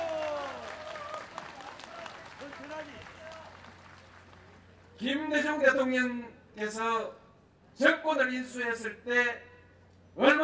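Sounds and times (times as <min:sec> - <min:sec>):
crowd applause: 0:00.0 - 0:04.7
speech: 0:05.0 - 0:07.2, 0:07.8 - 0:09.5, 0:10.2 - 0:10.4.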